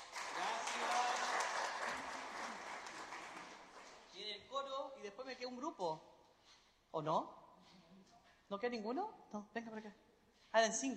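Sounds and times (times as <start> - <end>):
audience applause: 0.0 - 4.2
speech: 4.6 - 6.1, 6.9 - 7.4, 8.5 - 10.9.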